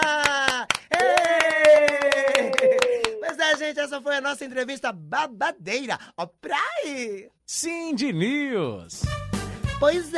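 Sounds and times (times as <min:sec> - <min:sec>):
rhythmic clapping: 0:00.0 - 0:04.4
speech: 0:03.7 - 0:09.2, 0:09.8 - 0:10.1.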